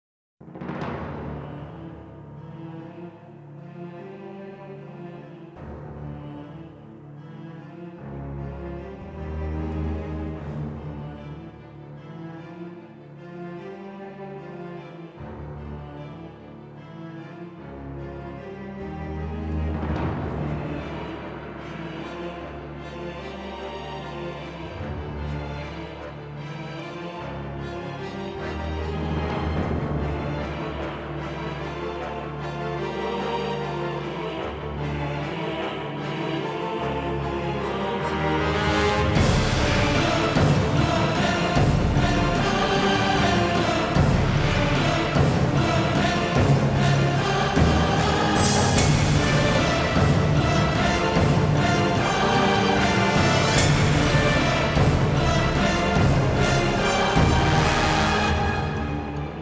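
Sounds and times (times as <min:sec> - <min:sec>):
gothic trailer music: 0:00.4 - 0:59.4.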